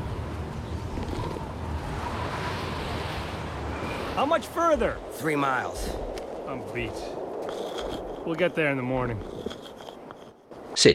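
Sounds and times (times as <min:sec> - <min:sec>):
wind blowing through snow in a snowy mountain landscape: 0:00.0 - 0:10.9
speech: 0:04.2 - 0:09.6, 0:10.8 - 0:10.9.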